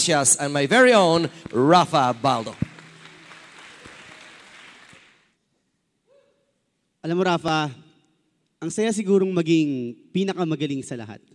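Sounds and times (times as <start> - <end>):
speech: 0.0 - 2.7, 7.0 - 7.8, 8.6 - 11.3
audience applause: 1.2 - 5.3.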